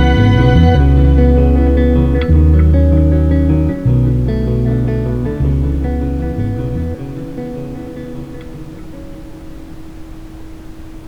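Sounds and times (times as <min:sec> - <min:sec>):
ambient sound for chakras: 0:00.0 - 0:07.5.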